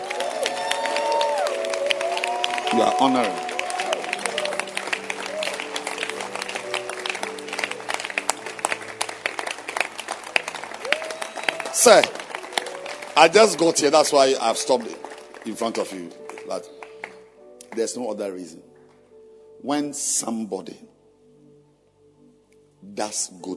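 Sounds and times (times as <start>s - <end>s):
crowd audience clapping hands: 0.0s - 18.0s
speech: 2.7s - 3.5s, 11.8s - 12.2s, 13.2s - 16.7s, 17.8s - 18.7s, 19.6s - 21.0s, 23.0s - 23.5s.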